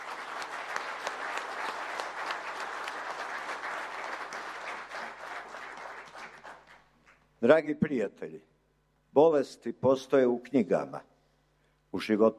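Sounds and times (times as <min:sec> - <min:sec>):
audience applause at a formal gathering: 0:00.0 - 0:06.9
speech: 0:07.4 - 0:08.6, 0:09.2 - 0:11.1, 0:11.9 - 0:12.3.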